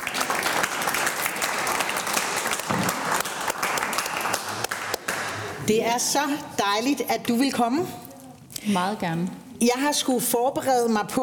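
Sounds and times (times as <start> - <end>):
audience applause welcoming a guest in a church in Ørsted: 0.0 - 5.6
speech: 5.7 - 8.0, 8.6 - 11.2.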